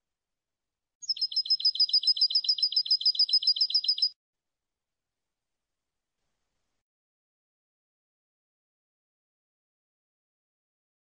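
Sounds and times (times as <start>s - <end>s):
European goldfinch song: 1.0s - 4.2s.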